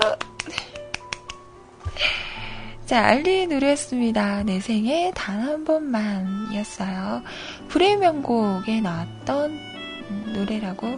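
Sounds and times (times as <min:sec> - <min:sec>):
clapping: 0:00.0 - 0:01.4
speech: 0:02.9 - 0:10.9.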